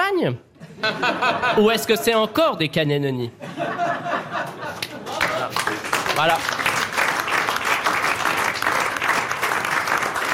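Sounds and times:
speech: 0.2 - 4.1, 6.2 - 6.6
laughter: 0.6 - 2.1, 3.4 - 5.8
standing ovation applause from a crowd: 5.0 - 10.3.

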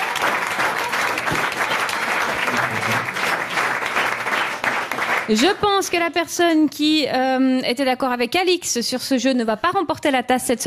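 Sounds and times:
audience applause: 0.0 - 5.9
speech: 5.3 - 10.6.

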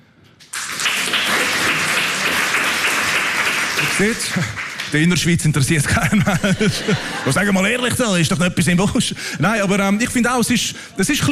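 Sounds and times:
audience clapping: 0.4 - 7.4
speech: 4.0 - 11.3
laughter: 5.7 - 7.9.

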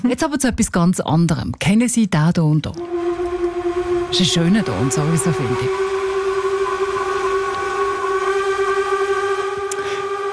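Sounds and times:
speech: 0.0 - 3.2, 4.1 - 6.0
steamship horn: 2.8 - 10.3.

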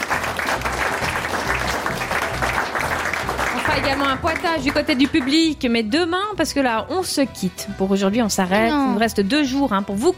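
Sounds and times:
audience applause: 0.0 - 5.5
speech: 3.8 - 10.1.

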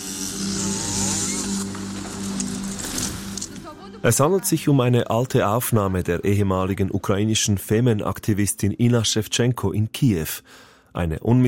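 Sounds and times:
chainsaw cutting down a wooden cross: 0.0 - 3.6
speech: 4.0 - 11.4.

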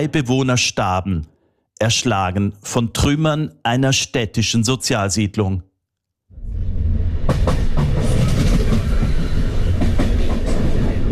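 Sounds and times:
speech: 0.0 - 5.7
regional express train rolling through the Po plain near Bergamo: 6.4 - 11.1.

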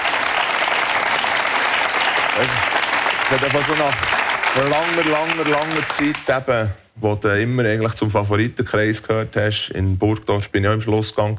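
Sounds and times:
audience applause: 0.0 - 6.4
speech: 2.4 - 2.7, 3.3 - 11.3.

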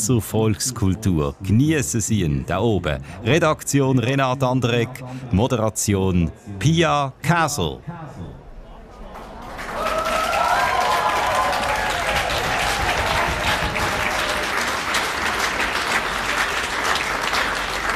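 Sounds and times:
speech: 0.0 - 8.3
audience applause at yodel festival: 9.1 - 17.9.

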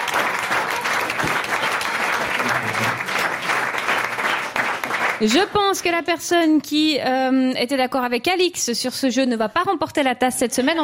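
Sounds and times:
audience applause: 0.0 - 5.8
speech: 5.2 - 10.8.

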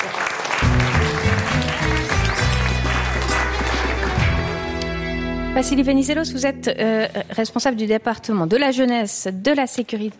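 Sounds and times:
loud steady applause from a crowd: 0.0 - 4.8
speech: 5.6 - 10.1.

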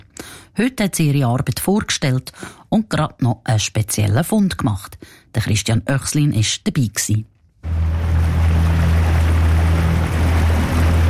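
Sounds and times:
speech: 0.6 - 7.8
small boat travelling out on Sempacher See: 7.7 - 11.0.

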